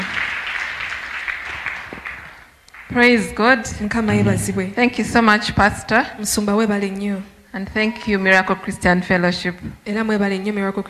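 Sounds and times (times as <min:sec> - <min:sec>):
audience clapping: 0:00.0 - 0:03.2
speech: 0:02.9 - 0:10.8.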